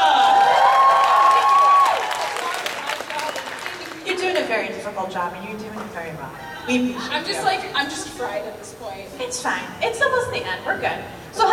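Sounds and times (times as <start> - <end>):
cheering: 0.0 - 4.0
round of applause: 0.0 - 4.2
speech: 4.9 - 11.5.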